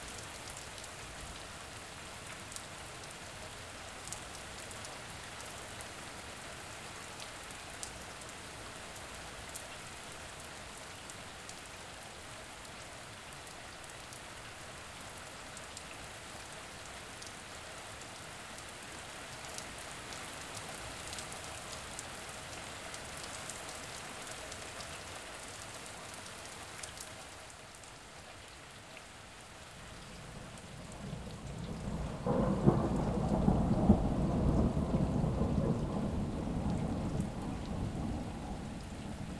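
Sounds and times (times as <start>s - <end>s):
rain: 0.0s - 39.3s
storm: 30.2s - 39.3s.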